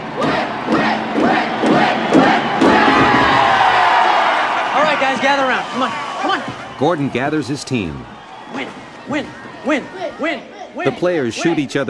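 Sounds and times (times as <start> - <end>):
loud crowd roar: 0.0 - 11.8
hockey players pounding their sticks: 0.2 - 3.6
group shouting: 0.2 - 6.6, 8.2 - 11.7
speech: 5.3 - 11.8.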